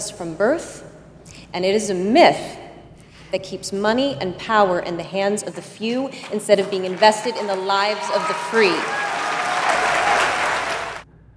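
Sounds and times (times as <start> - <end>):
speech: 0.2 - 2.6, 3.3 - 9.0
loud applause from a large crowd: 6.1 - 11.0.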